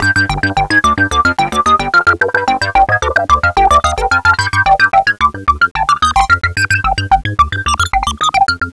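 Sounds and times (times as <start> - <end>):
music sequence in G: 0.0 - 8.7.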